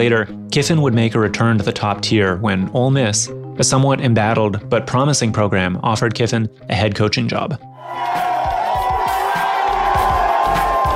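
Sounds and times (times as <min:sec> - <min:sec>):
speech: 0:00.0 - 0:08.2
Ole Miss fans cheering and whooping at the airport: 0:07.8 - 0:10.9.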